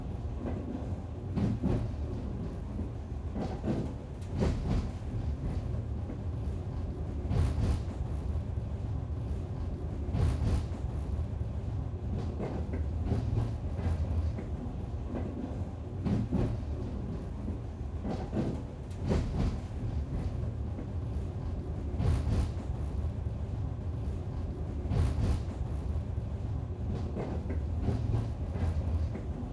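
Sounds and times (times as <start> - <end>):
sightseeing steam train interior running sound: 0.0 - 29.5.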